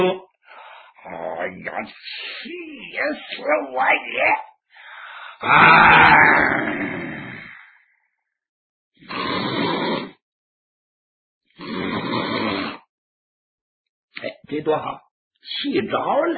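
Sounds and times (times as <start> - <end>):
speech: 0.0 - 0.3, 1.0 - 4.5, 5.4 - 7.1, 14.2 - 16.3
voice imitating loud snoring: 5.4 - 7.7, 9.0 - 10.2, 11.6 - 12.9.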